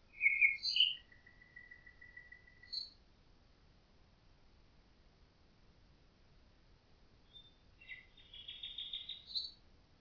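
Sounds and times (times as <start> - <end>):
common nightingale singing with whistled notes and fast rattling trill: 0.0 - 3.0, 7.2 - 9.6.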